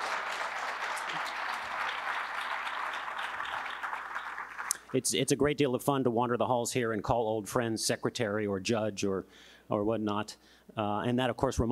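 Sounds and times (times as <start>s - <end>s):
audience applause: 0.0s - 4.9s
speech: 4.9s - 11.7s.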